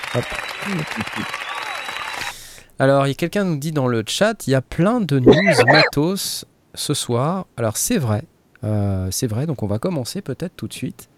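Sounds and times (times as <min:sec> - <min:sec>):
applause: 0:00.0 - 0:02.4
speech: 0:00.1 - 0:01.5, 0:02.8 - 0:11.1.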